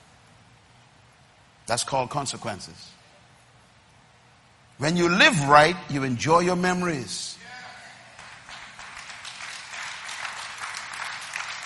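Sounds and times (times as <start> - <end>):
speech: 1.7 - 3.0, 4.8 - 7.5
crowd applause: 7.6 - 11.6.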